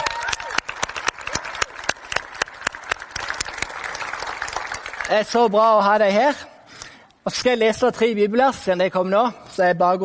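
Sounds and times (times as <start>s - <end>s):
audience applause: 0.0s - 5.6s
speech: 5.1s - 6.5s, 7.2s - 10.0s.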